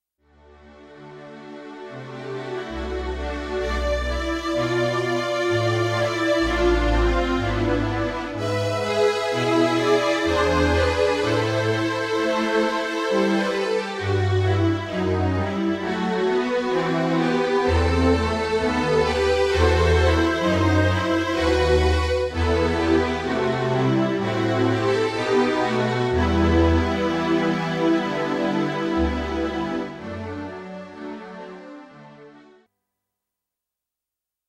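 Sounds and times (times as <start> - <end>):
strings: 0.4 - 32.5.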